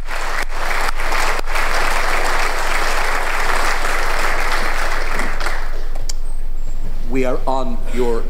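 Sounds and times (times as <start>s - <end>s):
standing ovation applause in the Dáil public gallery: 0.0s - 6.0s
speech: 7.2s - 8.2s.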